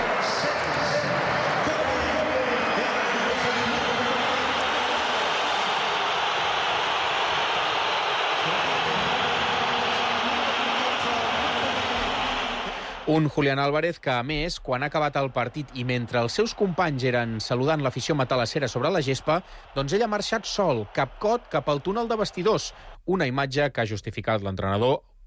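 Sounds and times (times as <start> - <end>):
stadium crowd booing and jeering: 0.0 - 13.3, 15.4 - 22.9
speech: 13.1 - 25.1.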